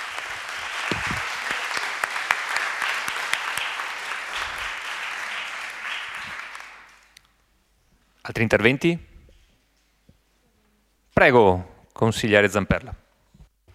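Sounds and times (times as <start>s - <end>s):
audience applause: 0.0s - 7.2s
speech: 8.3s - 9.1s, 11.2s - 13.0s.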